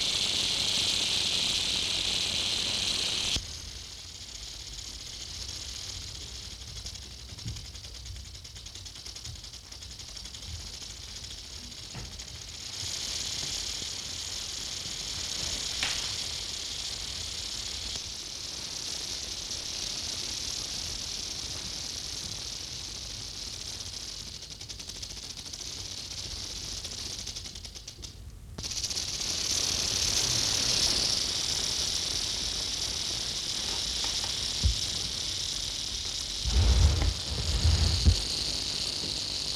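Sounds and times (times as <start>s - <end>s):
rattlesnake rattle buzzing: 0.0s - 39.5s
low background rumble: 36.4s - 39.2s.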